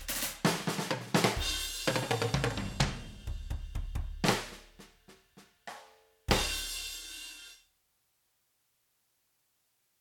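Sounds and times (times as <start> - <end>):
big and mean drum kit playing: 0.0 - 7.6.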